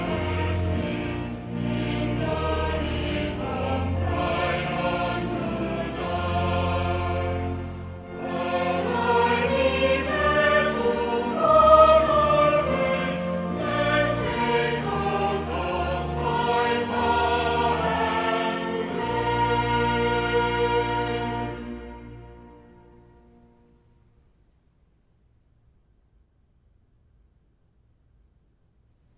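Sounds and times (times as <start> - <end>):
cathedral choir singing: 0.0 - 22.9.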